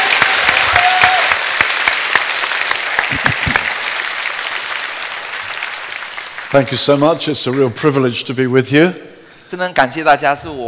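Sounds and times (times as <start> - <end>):
church congregation applauding a guest speaker: 0.0 - 8.0
speech: 6.5 - 10.6.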